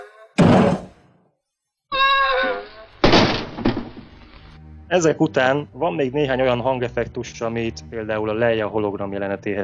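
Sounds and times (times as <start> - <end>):
robot falling flat on its face: 0.4 - 1.1, 3.0 - 4.1
speech: 4.9 - 9.6.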